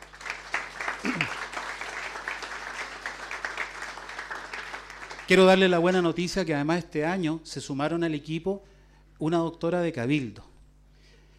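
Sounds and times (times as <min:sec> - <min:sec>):
audience applause: 0:00.0 - 0:06.0
speech: 0:05.3 - 0:10.5.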